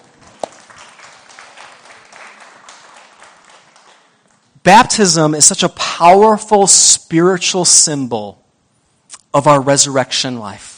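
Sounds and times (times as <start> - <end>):
audience clapping: 0.0 - 4.5
speech: 4.6 - 8.4, 9.3 - 10.7.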